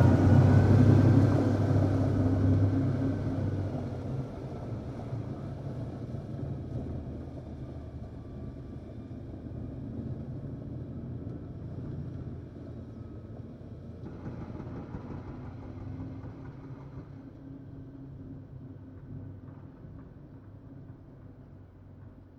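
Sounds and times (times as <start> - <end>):
Volvo A40 large articulated dump truck passing by in industrial quarry: 0.0 - 22.3.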